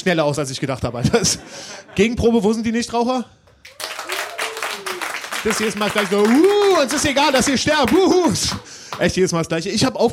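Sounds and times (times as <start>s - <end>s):
speech: 0.0s - 3.9s, 5.4s - 10.1s
audience clapping: 3.5s - 9.3s.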